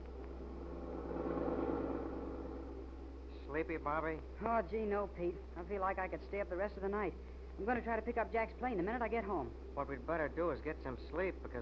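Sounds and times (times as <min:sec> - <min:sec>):
car engine running during drive: 0:00.0 - 0:05.5
speech: 0:03.5 - 0:11.5.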